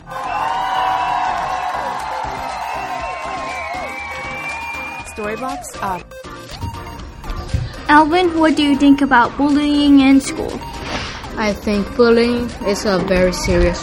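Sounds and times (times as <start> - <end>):
crowd applauding: 0.0 - 6.0
speech: 5.2 - 6.3, 7.9 - 10.7, 11.4 - 13.8.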